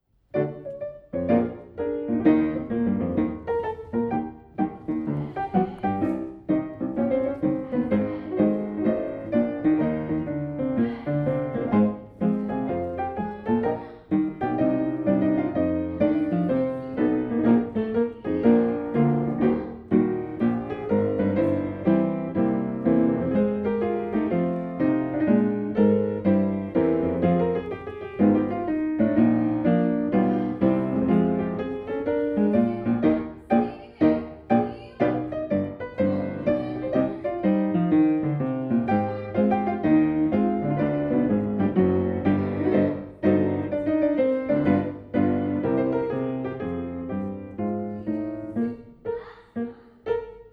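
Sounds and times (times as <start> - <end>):
grand battement ballet music: 0.2 - 50.5.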